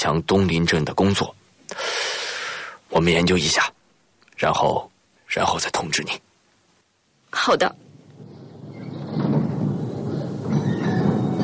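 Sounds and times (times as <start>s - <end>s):
speech: 0.0s - 1.8s, 2.9s - 3.8s, 4.4s - 6.3s, 7.3s - 7.8s
tram running on rails: 8.7s - 11.4s.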